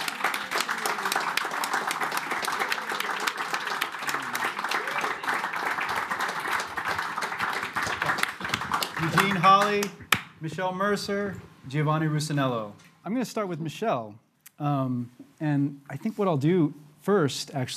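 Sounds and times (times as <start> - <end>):
audience round of applause: 0.0 - 10.0
speech: 9.1 - 17.7.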